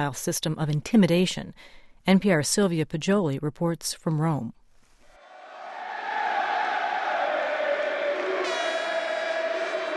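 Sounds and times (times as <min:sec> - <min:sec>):
speech: 0:00.0 - 0:04.6
football fans cheering as Juventus clinches its 29th Serie A title: 0:05.2 - 0:09.9.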